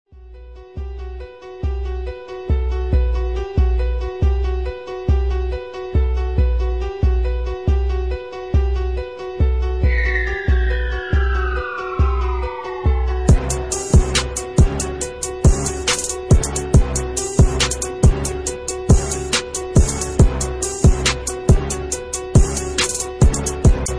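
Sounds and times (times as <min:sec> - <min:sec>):
instrumental music: 0:00.1 - 0:23.9.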